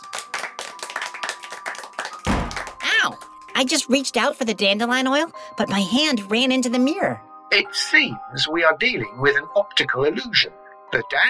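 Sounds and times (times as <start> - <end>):
small group clapping hands: 0.0 - 4.0
speech: 3.0 - 11.2.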